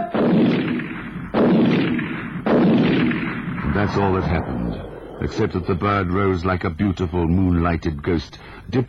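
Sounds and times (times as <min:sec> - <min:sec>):
shotgun blast: 0:00.1 - 0:06.0
speech: 0:03.7 - 0:08.8.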